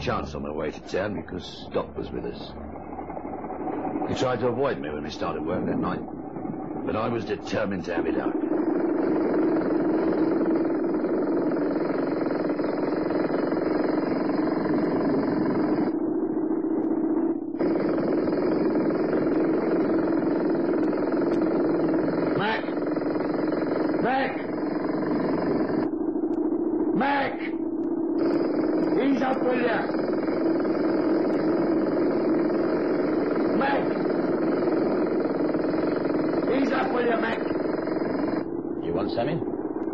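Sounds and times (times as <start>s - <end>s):
speech: 0.0s - 2.7s, 4.0s - 6.2s, 6.8s - 8.5s
short whining bursts: 0.0s - 39.9s
jackhammer running: 6.9s - 16.0s, 17.6s - 25.9s, 28.2s - 38.5s.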